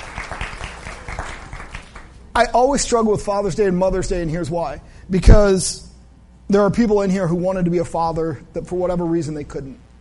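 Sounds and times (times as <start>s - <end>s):
audience clapping: 0.0s - 2.2s
speech: 2.4s - 5.9s, 6.5s - 9.8s.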